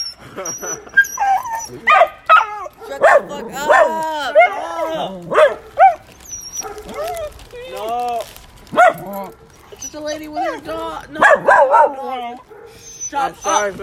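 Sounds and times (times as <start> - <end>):
speech: 0.4 - 1.0, 1.7 - 2.2, 2.9 - 5.6, 9.1 - 13.8
dog barking: 1.8 - 7.2, 8.7 - 9.6, 10.4 - 13.6.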